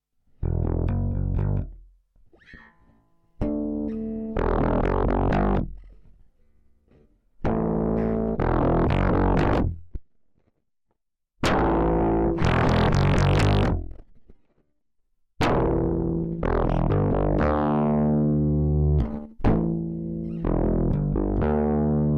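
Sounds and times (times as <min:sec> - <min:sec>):
electric bass through Joranalogue Fold 6 wavefolder: 0:00.4 - 0:01.8, 0:03.4 - 0:05.8, 0:07.4 - 0:09.8, 0:11.4 - 0:14.0, 0:15.4 - 0:22.1.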